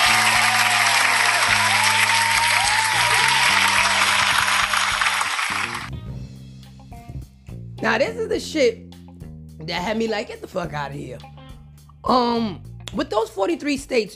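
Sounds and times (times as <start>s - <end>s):
applause: 0.0s - 5.9s
speech: 7.8s - 8.9s, 9.6s - 11.3s, 12.0s - 14.1s.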